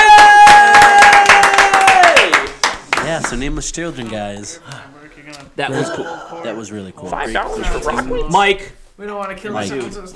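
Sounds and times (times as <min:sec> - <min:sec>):
applause and clapping: 0:00.0 - 0:03.4
speech: 0:03.3 - 0:10.1
laughter: 0:05.6 - 0:08.4.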